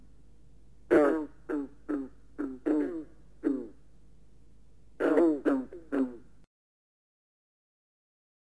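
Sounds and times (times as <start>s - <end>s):
green frog: 0.9s - 3.8s, 5.0s - 6.3s.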